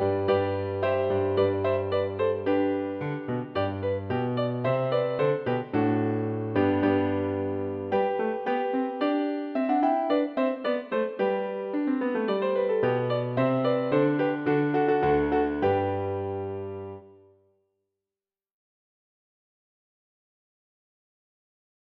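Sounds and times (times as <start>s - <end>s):
piano intro: 0.0s - 17.4s.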